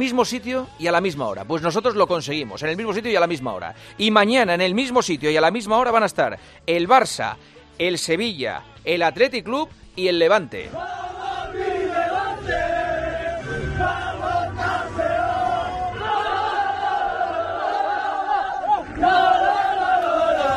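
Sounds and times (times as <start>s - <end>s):
speech: 0.0s - 11.7s
Levante football supporters cheering and chanting: 10.6s - 20.5s.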